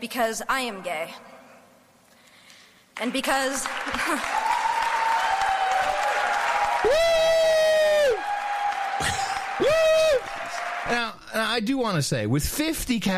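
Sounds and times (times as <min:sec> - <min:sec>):
speech: 0:00.0 - 0:01.3, 0:03.0 - 0:04.5, 0:06.8 - 0:07.1, 0:10.9 - 0:13.1
audience applause: 0:03.0 - 0:11.1
shrill sustained whistles or whoops: 0:04.3 - 0:10.7.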